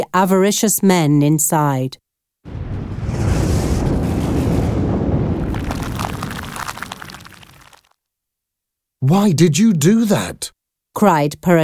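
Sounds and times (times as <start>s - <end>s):
speech: 0.0s - 2.6s, 9.0s - 11.6s
thunder rumbling: 2.5s - 7.8s.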